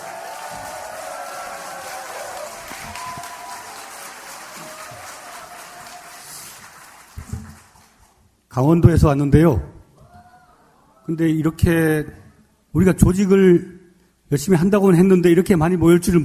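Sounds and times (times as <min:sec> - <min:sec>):
audience applause: 0:00.0 - 0:08.2
speech: 0:08.6 - 0:09.7, 0:11.1 - 0:16.2.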